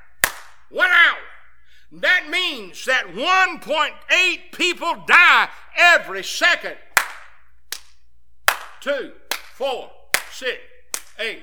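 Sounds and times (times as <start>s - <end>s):
hands clapping: 0.0s - 0.7s, 6.9s - 11.4s
man speaking short syllables: 0.0s - 7.0s, 8.7s - 11.4s
speech: 1.9s - 6.8s, 8.8s - 11.4s.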